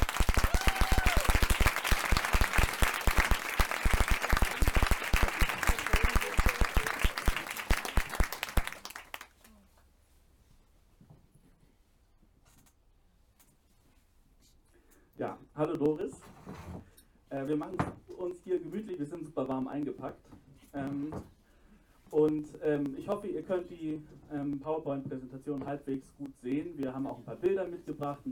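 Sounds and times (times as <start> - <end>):
audience applause: 0.0 - 9.3
speech: 15.6 - 21.4, 22.1 - 28.3.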